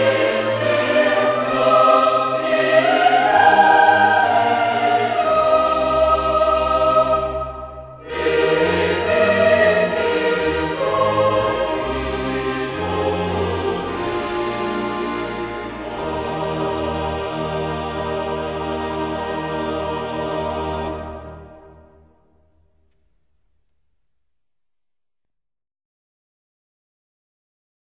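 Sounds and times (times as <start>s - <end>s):
chorale: 0.0s - 23.3s.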